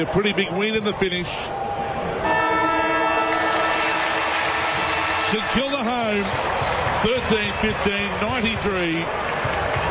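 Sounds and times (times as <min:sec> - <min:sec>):
speech: 0:00.0 - 0:01.9, 0:05.3 - 0:09.5
crowd noise: 0:00.0 - 0:09.9
stadium final siren: 0:02.1 - 0:07.8.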